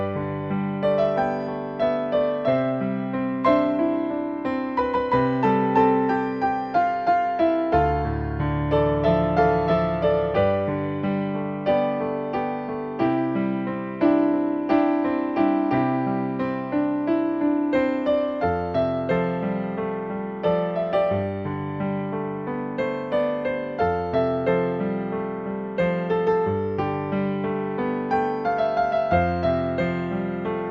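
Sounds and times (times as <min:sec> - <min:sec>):
solo piano playing: 0:00.0 - 0:30.6.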